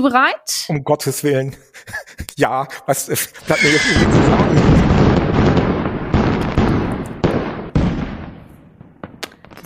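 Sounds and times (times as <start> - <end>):
speech: 0.0 - 5.4
laughter: 1.5 - 4.8
fireworks sound effect booming bursts: 4.0 - 9.6.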